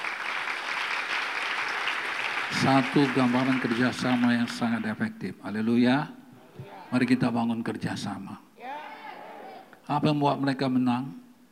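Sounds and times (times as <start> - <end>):
applause: 0.0 - 5.0
speech: 2.5 - 8.5, 9.9 - 11.5.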